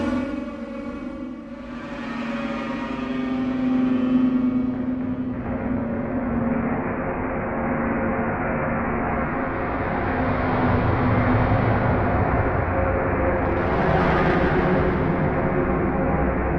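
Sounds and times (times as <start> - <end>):
slow pitch drop: 0.2 - 16.5.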